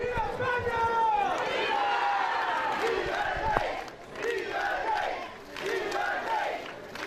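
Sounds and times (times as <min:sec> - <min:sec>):
dozens of monarchists chanting and cheering at the Sanxenxo marina: 0:00.0 - 0:07.0.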